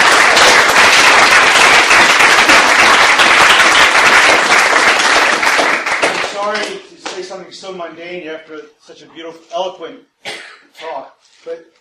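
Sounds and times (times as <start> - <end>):
audience applause for a speaker: 0.0 - 6.8
speech: 7.7 - 11.7.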